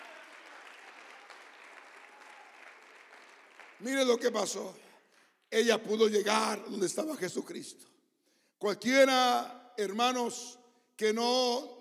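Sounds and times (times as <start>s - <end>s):
audience clapping: 0.0s - 4.5s
speech: 3.8s - 4.9s, 5.5s - 7.9s, 8.6s - 11.7s.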